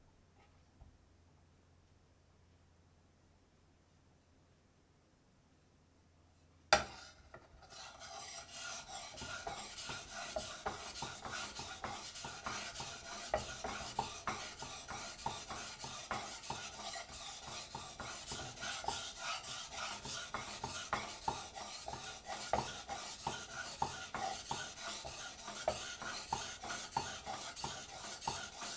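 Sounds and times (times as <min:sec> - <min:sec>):
knife sharpened on a stone: 0:06.8 - 0:28.7.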